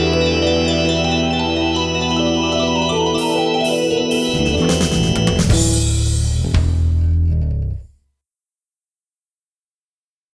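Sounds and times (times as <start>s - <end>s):
instrumental major minor melody: 0.0s - 7.9s.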